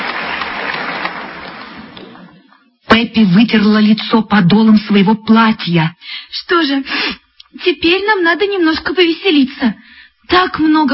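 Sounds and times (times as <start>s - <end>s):
theatre audience clapping after a show: 0.0s - 2.6s
speech: 3.0s - 10.9s.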